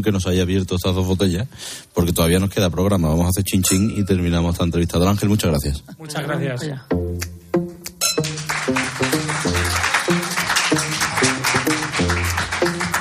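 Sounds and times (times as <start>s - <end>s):
speech: 0.0s - 7.3s
applause: 8.2s - 12.9s.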